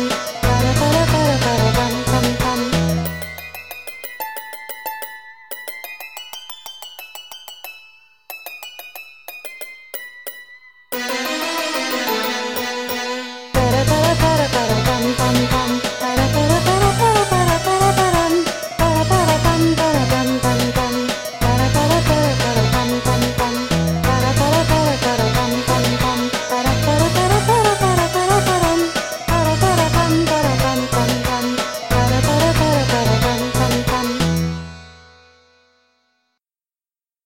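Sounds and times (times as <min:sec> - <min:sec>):
bhangra music: 0:00.0 - 0:05.2, 0:11.0 - 0:34.7.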